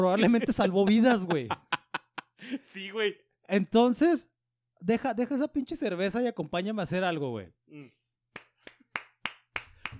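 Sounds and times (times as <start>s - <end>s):
speech: 0.0s - 1.7s, 2.4s - 8.0s
laughter: 0.2s - 2.7s
hand clapping: 8.3s - 9.9s.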